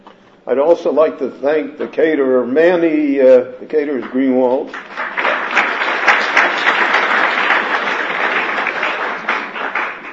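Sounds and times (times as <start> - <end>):
speech: 0.4 - 5.0
audience applause: 4.7 - 10.1.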